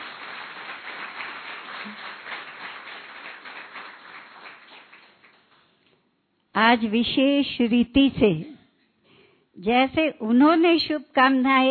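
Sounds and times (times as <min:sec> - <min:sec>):
audience clapping: 0:00.0 - 0:05.8
speech: 0:01.8 - 0:02.2, 0:06.6 - 0:08.6, 0:09.6 - 0:11.6.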